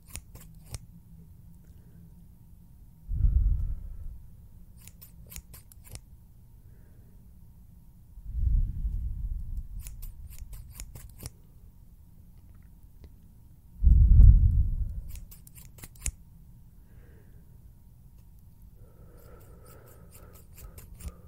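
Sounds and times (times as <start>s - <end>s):
scissors opening and closing: 0.0s - 0.9s, 4.8s - 6.1s, 9.6s - 11.4s, 14.9s - 16.2s, 19.2s - 21.2s
steady hum: 0.0s - 21.2s.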